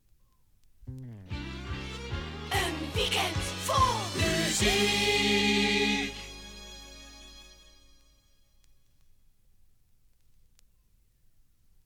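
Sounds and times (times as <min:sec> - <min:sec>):
maxi jingle single: 0:02.5 - 0:08.4.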